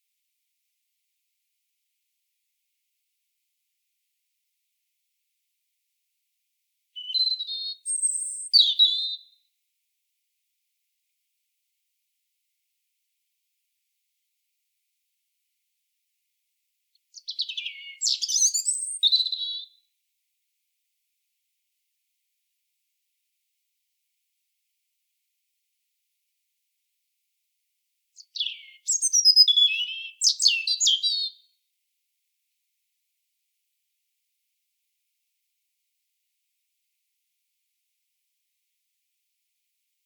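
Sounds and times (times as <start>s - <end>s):
European robin singing: 7.0s - 9.4s, 17.1s - 19.8s, 28.2s - 31.5s.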